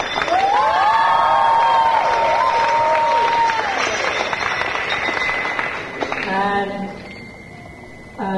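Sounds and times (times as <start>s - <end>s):
people shouting and whooping: 0.0s - 4.4s
audience applause and cheering: 0.0s - 8.2s.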